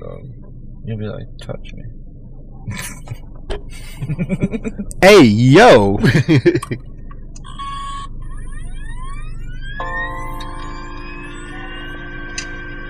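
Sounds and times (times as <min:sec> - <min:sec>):
speech: 0:00.0 - 0:02.0, 0:02.6 - 0:06.9
laughter: 0:02.7 - 0:05.0, 0:06.0 - 0:06.8
phone ringing with siren-like ringtone: 0:09.7 - 0:12.8.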